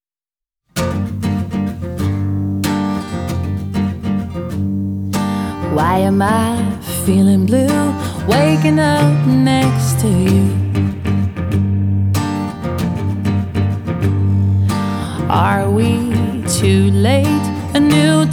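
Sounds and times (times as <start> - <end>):
acoustic music: 0.7 - 18.3.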